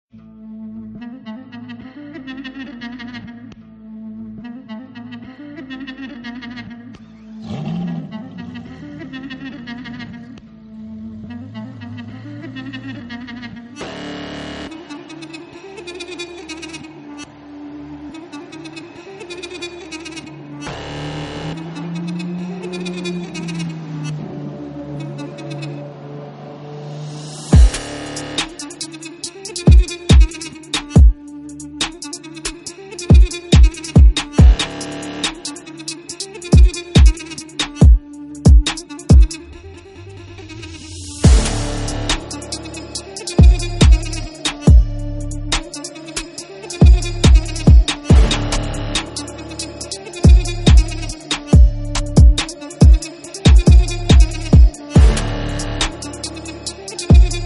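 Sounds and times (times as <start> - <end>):
Kurdish trap beat: 13.8 - 25.8, 27.1 - 39.6, 40.6 - 57.4.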